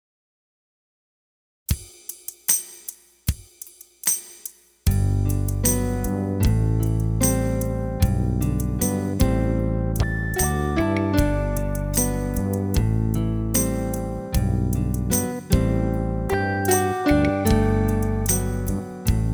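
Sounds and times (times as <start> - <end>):
slow improvisation in G major: 4.9 - 19.3.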